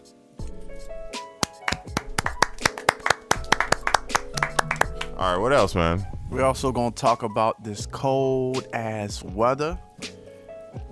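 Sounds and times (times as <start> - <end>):
crowd applause: 1.4 - 5.2
speech: 5.2 - 9.9.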